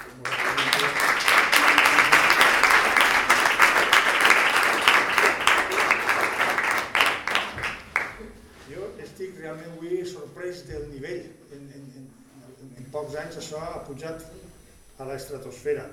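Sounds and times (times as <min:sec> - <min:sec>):
audience applause: 0:00.0 - 0:08.4
speech: 0:13.3 - 0:14.4, 0:15.0 - 0:15.9.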